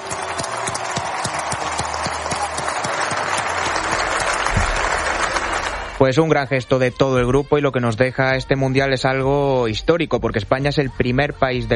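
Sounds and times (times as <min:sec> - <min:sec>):
audience applause in tribute: 0:00.0 - 0:06.2
speech: 0:06.0 - 0:11.7.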